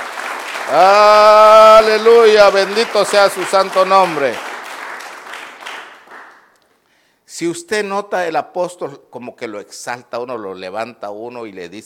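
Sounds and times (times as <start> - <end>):
crowd clapping: 0.0 - 6.6
speech: 0.7 - 4.5, 7.4 - 11.8.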